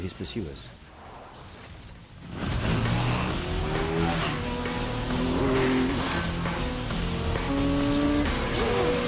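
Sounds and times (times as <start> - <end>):
motorbike engine roaring during a chase: 2.2 - 9.0.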